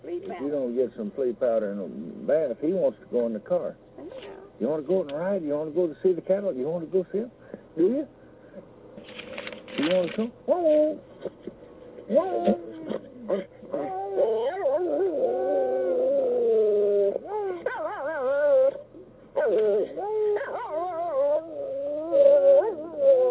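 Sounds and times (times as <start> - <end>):
speech: 0.2 - 3.8, 4.6 - 8.2, 9.8 - 11.4, 12.1 - 13.9
dog howling: 10.5 - 11.0, 12.1 - 23.2.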